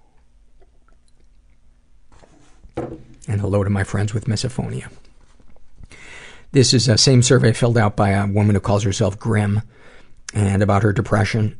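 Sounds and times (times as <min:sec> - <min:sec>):
person sipping green tea: 0:00.1 - 0:01.6
swallowing: 0:00.1 - 0:01.6
speech: 0:02.9 - 0:05.1, 0:06.5 - 0:11.5.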